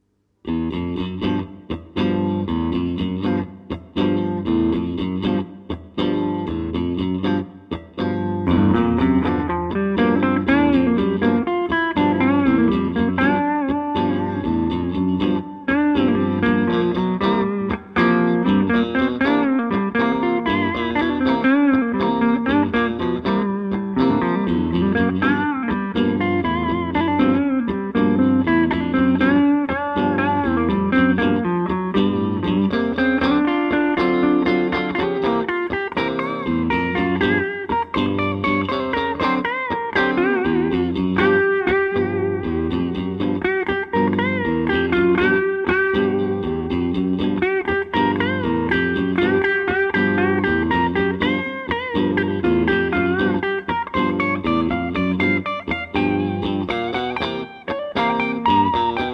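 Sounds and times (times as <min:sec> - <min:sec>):
blues music: 0:00.0 - 0:59.1.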